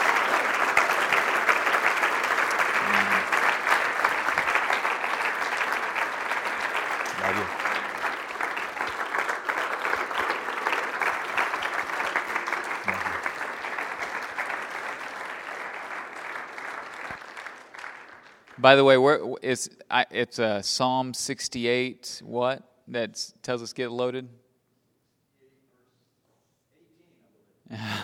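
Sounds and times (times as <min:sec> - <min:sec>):
audience applause: 0:00.0 - 0:18.6
speech: 0:18.6 - 0:24.4.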